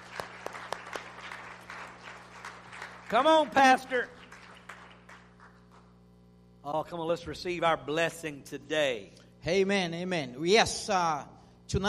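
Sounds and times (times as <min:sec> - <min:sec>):
audience clapping hands: 0:00.0 - 0:06.0
speech: 0:03.1 - 0:04.2, 0:06.7 - 0:11.8.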